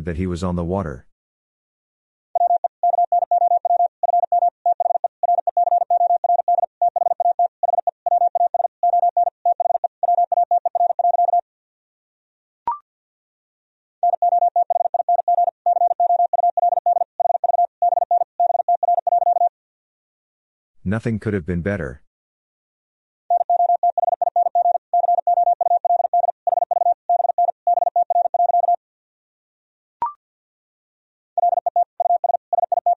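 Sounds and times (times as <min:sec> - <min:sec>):
speech: 0:00.0 - 0:01.1, 0:20.9 - 0:22.0
fast Morse code tone at 50 words per minute: 0:02.4 - 0:11.4, 0:14.0 - 0:19.5, 0:23.3 - 0:28.8, 0:31.4 - 0:32.9.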